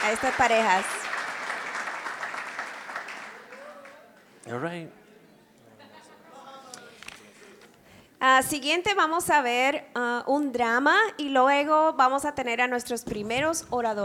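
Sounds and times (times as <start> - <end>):
speech: 0.0 - 1.1, 4.5 - 5.0, 8.2 - 14.0
audience applause: 0.0 - 4.1.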